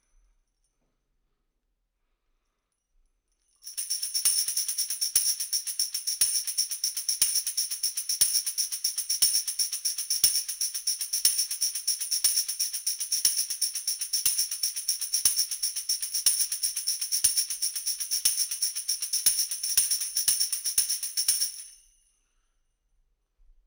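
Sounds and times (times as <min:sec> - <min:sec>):
tambourine: 0:03.6 - 0:22.0.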